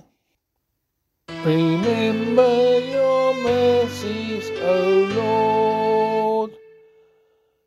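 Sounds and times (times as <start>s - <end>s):
psalm singing: 1.3s - 7.2s.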